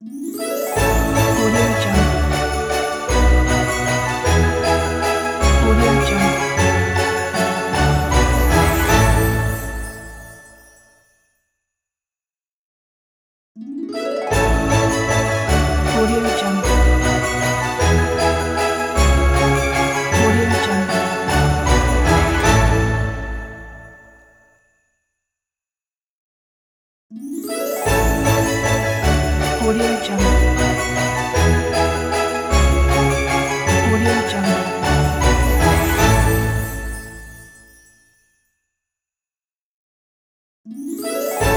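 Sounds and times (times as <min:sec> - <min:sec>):
Christmas carol jingle logo: 0:00.1 - 0:11.0, 0:13.8 - 0:24.5, 0:27.2 - 0:38.0, 0:40.8 - 0:41.5.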